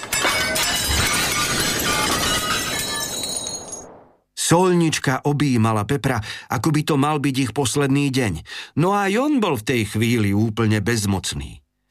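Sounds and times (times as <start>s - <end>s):
crash of falling plates and cutlery: 0.0s - 3.9s
speech: 4.5s - 11.6s.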